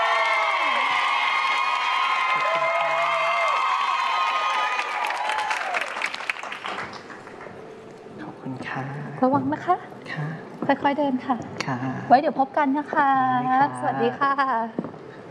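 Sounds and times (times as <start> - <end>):
cheers and whoops from a crowd: 0.0 - 6.1
crowd applauding: 0.0 - 7.6
speech: 9.2 - 14.8.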